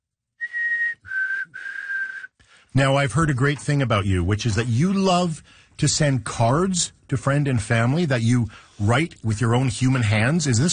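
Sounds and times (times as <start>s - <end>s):
person whistling black-capped chickadee call: 0.4s - 2.4s
speech: 2.8s - 10.7s.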